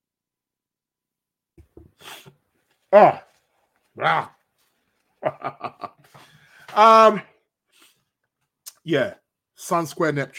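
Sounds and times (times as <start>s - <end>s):
person blowing nose: 1.8s - 2.4s
speech: 2.9s - 3.2s, 5.2s - 5.8s, 6.8s - 7.3s, 8.8s - 10.3s
laughter: 5.2s - 6.2s.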